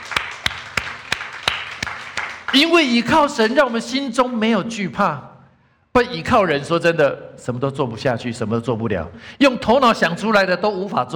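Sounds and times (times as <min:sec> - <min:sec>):
audience applause: 0:00.0 - 0:02.7
speech: 0:02.5 - 0:05.3, 0:06.0 - 0:11.1.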